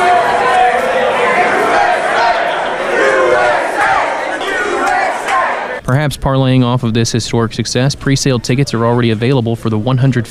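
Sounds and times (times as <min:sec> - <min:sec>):
large crowd of fans chanting: 0:00.0 - 0:05.8
speech: 0:06.0 - 0:10.2.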